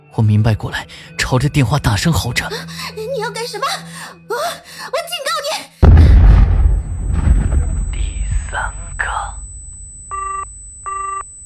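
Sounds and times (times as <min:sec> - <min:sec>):
speech: 0:00.1 - 0:05.7
car explosion: 0:05.8 - 0:10.8
brief electronic beep tone: 0:07.9 - 0:11.4.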